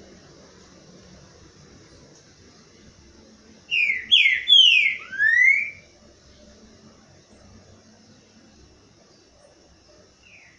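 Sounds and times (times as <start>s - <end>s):
Green-winged Saltator song: 3.7s - 5.8s, 10.2s - 10.5s.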